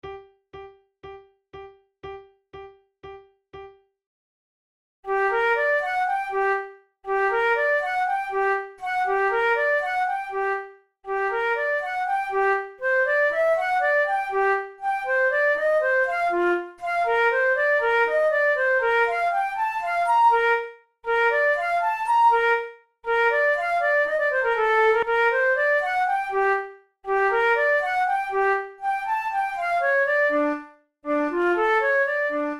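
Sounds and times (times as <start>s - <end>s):
vivace flute tunes: 5.1s - 32.5s.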